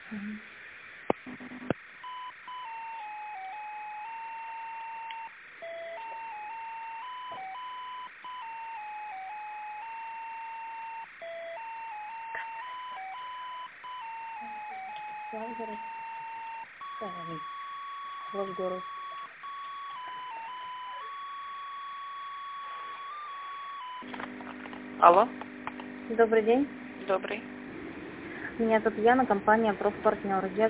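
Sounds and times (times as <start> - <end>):
speech: 0.1 - 0.6, 15.3 - 15.9, 17.0 - 17.6, 18.3 - 19.0, 25.0 - 25.4, 26.1 - 27.5, 28.6 - 30.6
electronic melody over a telephone line while a call is transferred: 1.3 - 24.1.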